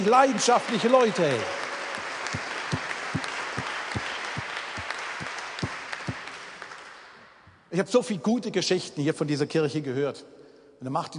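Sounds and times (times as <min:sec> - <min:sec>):
speech: 0:00.0 - 0:01.6, 0:07.8 - 0:11.1
audience applause for the musicians: 0:00.0 - 0:07.0.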